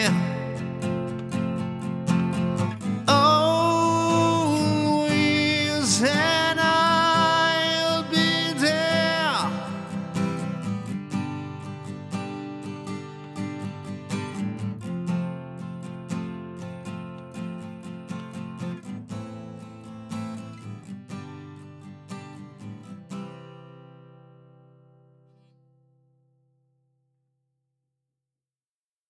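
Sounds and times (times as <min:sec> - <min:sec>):
vocals recorded with an Austrian Audio OC818 microphone: 0:00.0 - 0:00.7, 0:03.1 - 0:10.5
guitar through a V76 preamp: 0:00.0 - 0:26.9.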